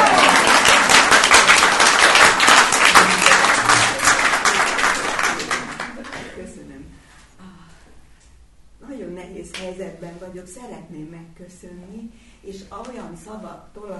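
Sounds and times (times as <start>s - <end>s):
crowd applause: 0.0s - 6.4s
speech: 10.4s - 13.9s.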